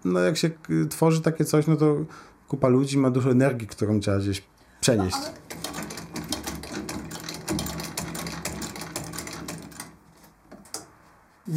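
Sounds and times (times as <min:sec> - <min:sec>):
speech: 0:00.0 - 0:05.6
cobbler's patching sewing machine stitching: 0:05.1 - 0:10.2.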